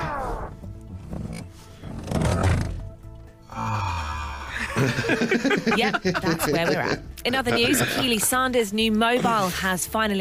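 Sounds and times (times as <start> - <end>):
recliner chair reclining, slowed down: 0.2 - 3.3
laughter: 4.5 - 8.4
speech: 4.8 - 10.1.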